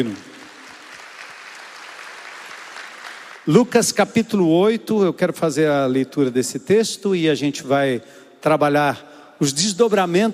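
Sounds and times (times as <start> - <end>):
speech: 0.0 - 0.3, 3.4 - 10.3
audience applauding: 0.0 - 3.8.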